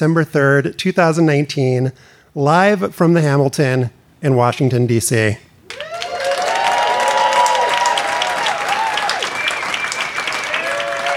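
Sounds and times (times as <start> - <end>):
speech: 0.0 - 6.1
audience applause: 5.7 - 11.1.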